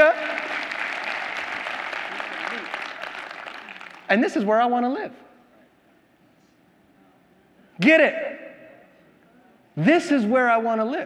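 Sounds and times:
audience applause: 0.0s - 4.1s
speech: 4.1s - 5.3s, 7.8s - 8.4s, 9.8s - 11.0s.

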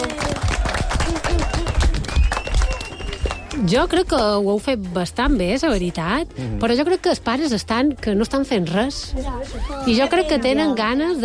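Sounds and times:
round of applause: 0.0s - 3.7s
speech: 3.6s - 11.2s.

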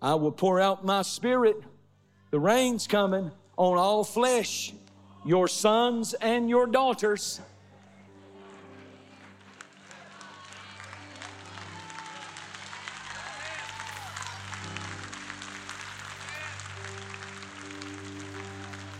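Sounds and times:
speech: 0.0s - 1.7s, 2.3s - 7.5s
audience clapping hands: 7.8s - 18.9s.

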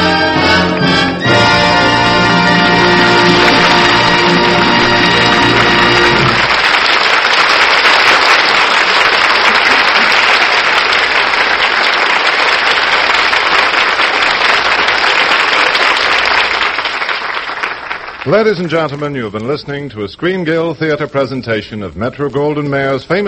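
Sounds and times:
studio audience applause: 0.7s - 19.0s
speech: 18.3s - 23.2s.

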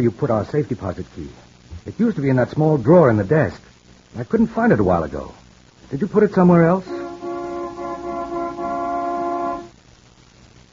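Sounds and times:
speech: 0.0s - 7.0s
car horn honking: 6.8s - 9.7s.

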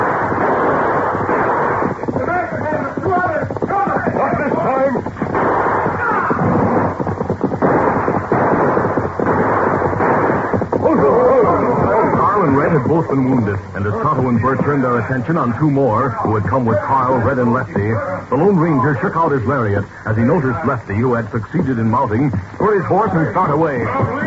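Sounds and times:
gunfire in a shootout from an old radio western drama: 0.0s - 12.4s
speech: 13.1s - 13.6s, 14.5s - 24.2s.

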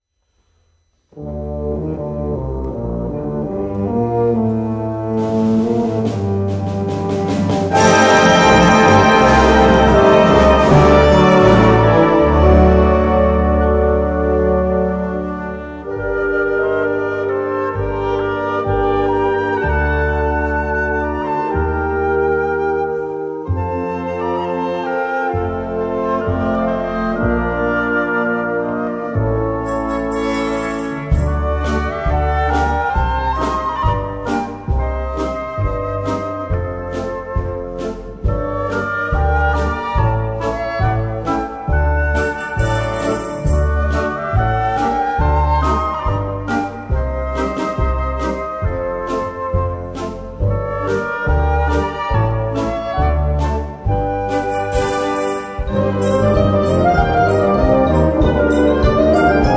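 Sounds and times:
klezmer folk song: 1.2s - 59.5s.

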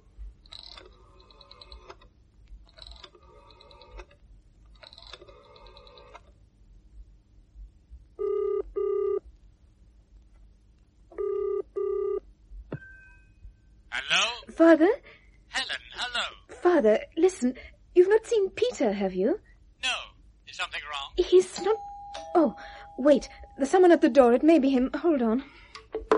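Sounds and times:
rotary dial clicks: 0.5s - 6.3s
double-burst telephone ringing tones: 8.2s - 9.2s, 11.1s - 12.2s, 21.6s - 24.2s
speech: 14.1s - 15.1s, 16.7s - 19.5s, 21.3s - 25.5s.

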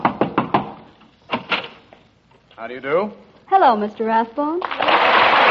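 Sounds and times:
knocking on a door: 0.0s - 0.8s
speech: 2.6s - 5.4s.

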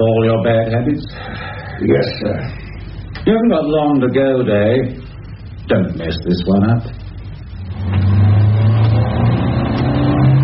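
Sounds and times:
speech: 0.8s - 5.0s, 5.7s - 7.0s
car engine revving and accelerating: 7.4s - 10.4s.

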